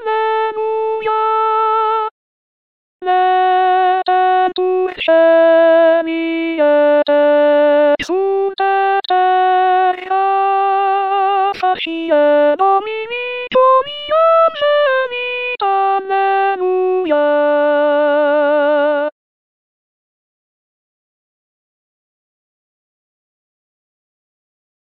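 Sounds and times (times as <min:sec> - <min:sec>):
artificial alto voice: 0:00.0 - 0:02.1, 0:03.0 - 0:19.2.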